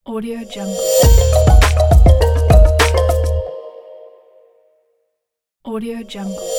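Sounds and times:
audio logo intro jingle: 0:00.5 - 0:04.5.

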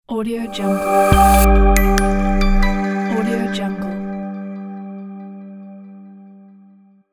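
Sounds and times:
logo jingle: 0:00.4 - 0:05.9.

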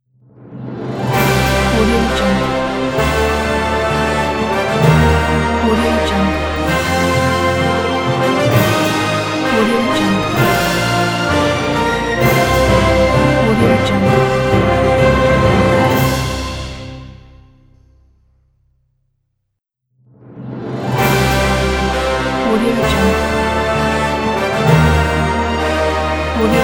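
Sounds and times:
orchestral logo music: 0:00.3 - 0:17.8, 0:20.2 - 0:26.6.

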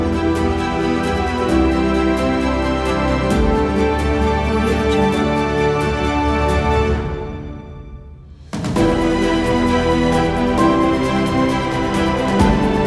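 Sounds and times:
epic motivational orchestral music: 0:00.0 - 0:12.8.

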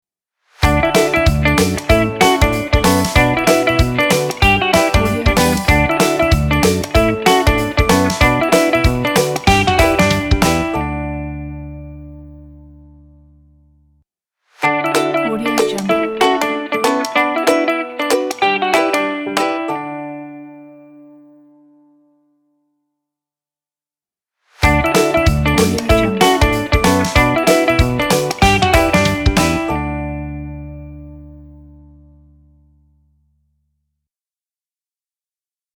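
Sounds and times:
fun guitar intro logo: 0:00.6 - 0:13.6, 0:14.6 - 0:22.0, 0:24.6 - 0:32.5.

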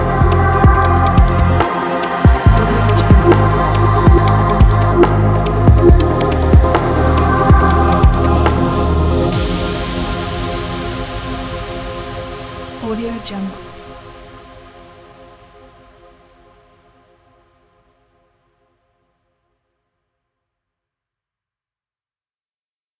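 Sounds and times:
deep abstract downtempo music: 0:00.0 - 0:14.1.

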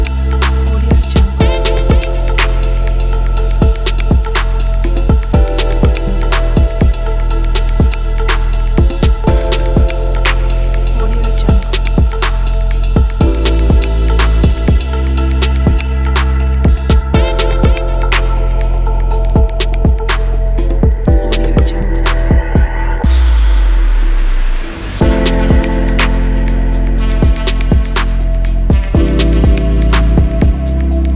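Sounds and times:
sexy erotic hip hop lounge music: 0:00.0 - 0:31.1.

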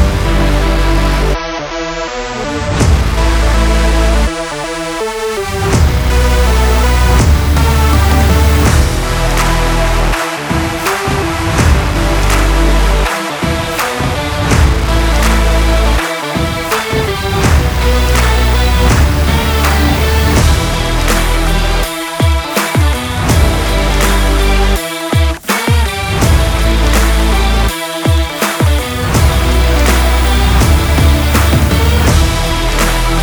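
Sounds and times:
action sport rock music: 0:00.0 - 0:33.2.

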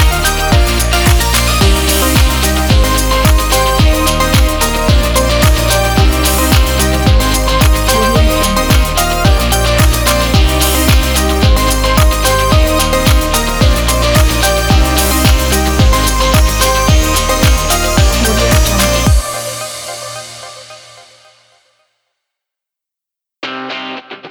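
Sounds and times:
upbeat pop drum kit: 0:00.0 - 0:19.4.

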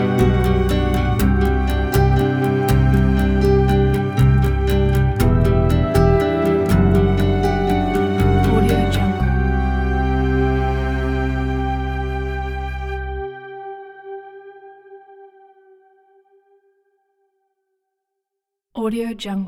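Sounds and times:
reflective acoustic guitar: 0:00.0 - 0:14.2.

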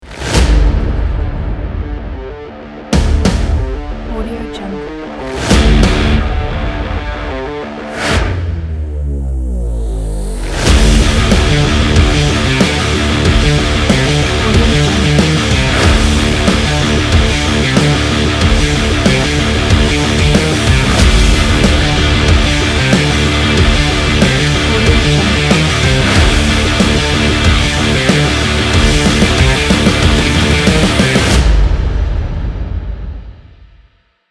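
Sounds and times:
action rock trailer music: 0:00.0 - 0:33.8.

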